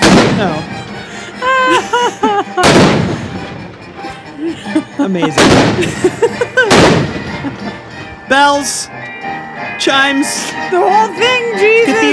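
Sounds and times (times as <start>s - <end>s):
cannon fire: 0.0s - 0.7s, 2.6s - 3.7s, 5.4s - 5.9s, 6.7s - 7.4s
speech: 0.4s - 0.7s, 5.0s - 6.2s, 8.3s - 9.0s, 9.8s - 12.1s
laughter: 1.0s - 7.9s.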